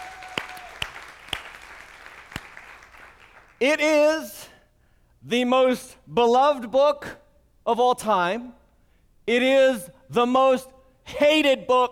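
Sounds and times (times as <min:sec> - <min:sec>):
church congregation clapping: 0:00.0 - 0:03.6
speech: 0:03.6 - 0:04.4, 0:05.2 - 0:08.6, 0:09.3 - 0:11.9.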